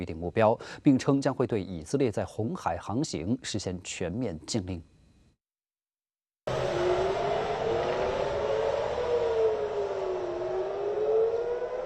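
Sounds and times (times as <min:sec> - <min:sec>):
speech: 0:00.0 - 0:04.9
air raid warning siren in Tel Aviv: 0:06.5 - 0:11.8.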